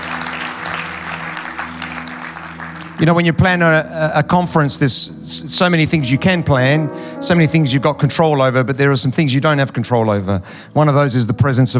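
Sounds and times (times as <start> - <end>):
conference audience applause: 0.0 - 3.2
speech: 3.0 - 11.7.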